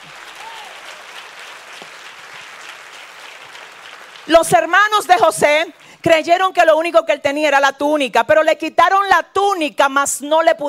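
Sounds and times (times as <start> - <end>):
audience applause: 0.0 - 6.0
speech: 4.2 - 10.6.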